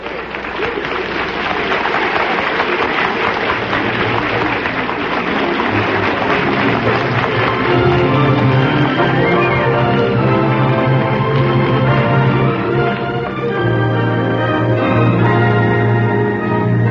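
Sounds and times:
theater audience applauding after a play premiere at the Little Theater off Times Square: 0.0s - 16.8s.

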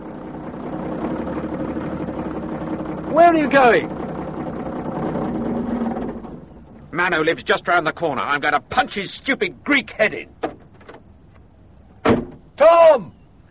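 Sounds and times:
lorry engine idling: 0.0s - 12.6s
speech: 3.2s - 4.0s, 7.0s - 10.4s, 12.6s - 13.4s.

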